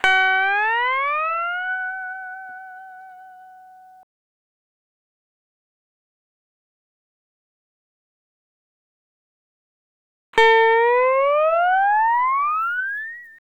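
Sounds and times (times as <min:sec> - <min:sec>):
dry lounge guitar effect in E: 0:00.0 - 0:04.0, 0:10.4 - 0:13.3.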